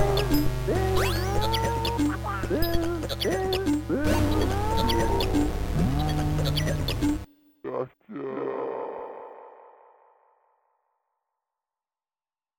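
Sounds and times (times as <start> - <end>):
circuit-bent electronic song: 0.0 - 7.3.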